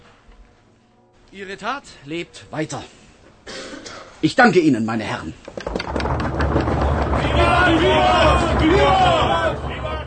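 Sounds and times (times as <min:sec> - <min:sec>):
speech: 0:01.3 - 0:03.0, 0:04.2 - 0:05.7
audience clapping: 0:05.6 - 0:10.0
crowd cheering and shouting: 0:07.0 - 0:10.0.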